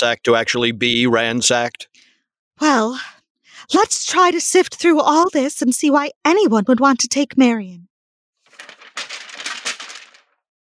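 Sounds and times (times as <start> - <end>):
speech: 0.0 - 2.0, 2.6 - 7.9
papers rustling: 8.5 - 10.3.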